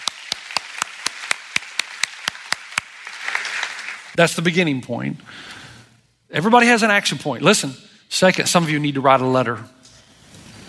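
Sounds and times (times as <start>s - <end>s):
crowd clapping: 0.0s - 4.2s
speech: 4.2s - 5.6s, 6.3s - 9.8s.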